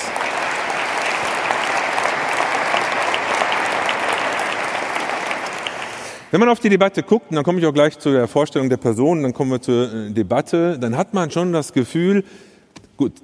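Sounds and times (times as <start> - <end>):
audience applause: 0.0 - 6.3
speech: 6.3 - 13.2.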